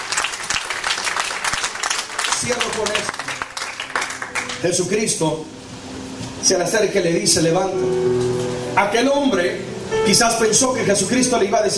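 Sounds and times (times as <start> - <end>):
audience applauding: 0.0 - 4.7
speech: 2.4 - 3.4, 4.6 - 5.6, 6.4 - 11.7.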